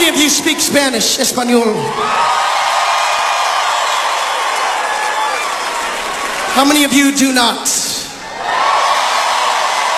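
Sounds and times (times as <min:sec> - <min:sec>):
speech: 0:00.3 - 0:02.8, 0:06.6 - 0:07.9
audience cheering: 0:01.9 - 0:06.9, 0:08.2 - 0:09.9.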